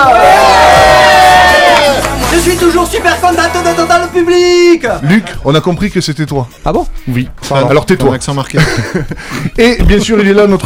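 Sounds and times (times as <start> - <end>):
studio audience cheering at a live show: 0.0 - 2.8
speech: 2.4 - 10.6
laughter: 8.5 - 9.6.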